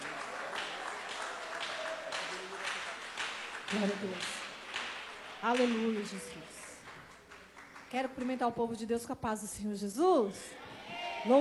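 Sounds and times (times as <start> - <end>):
audience applauding: 0.0 - 8.6
speech: 3.7 - 4.4, 5.4 - 6.6, 7.9 - 10.6.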